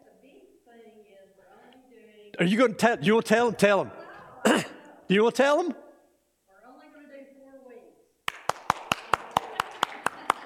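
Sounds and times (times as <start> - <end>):
speech: 2.4 - 5.8
people in a room clapping in unison: 8.3 - 10.4.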